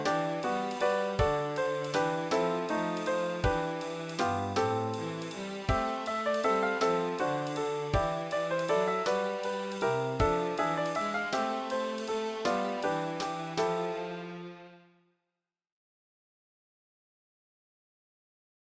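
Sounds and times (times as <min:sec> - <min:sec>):
jazz drum kit playing: 0:00.0 - 0:14.0.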